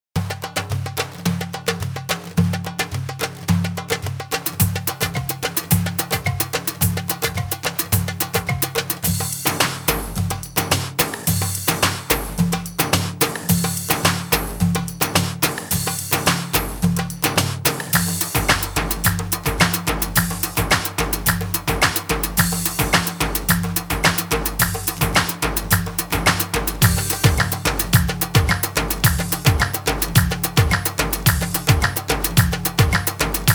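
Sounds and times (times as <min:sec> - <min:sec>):
instrumental music: 0:00.2 - 0:33.5.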